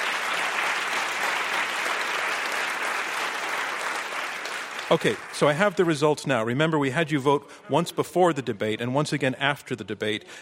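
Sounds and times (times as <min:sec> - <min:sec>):
audience applause: 0:00.0 - 0:06.0
speech: 0:04.9 - 0:10.4.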